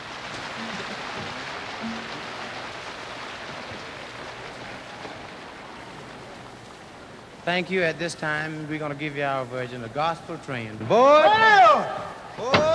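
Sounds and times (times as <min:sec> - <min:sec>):
audience applause: 0:00.0 - 0:07.2, 0:11.0 - 0:12.7
speech: 0:07.5 - 0:12.7.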